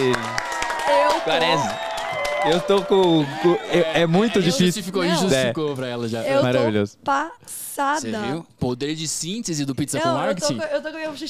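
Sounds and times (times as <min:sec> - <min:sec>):
audience applauding: 0:00.0 - 0:04.4
people whooping and calling: 0:00.0 - 0:04.6
speech: 0:01.2 - 0:11.2.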